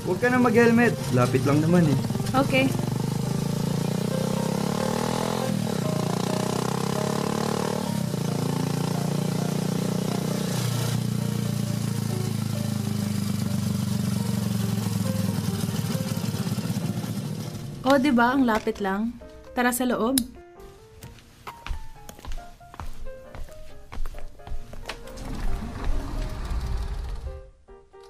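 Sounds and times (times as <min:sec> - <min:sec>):
speech: 0:00.0 - 0:02.9, 0:18.0 - 0:20.4
motorcycle carrying a rider and a passenger on a short ride: 0:00.0 - 0:17.9, 0:25.2 - 0:27.5.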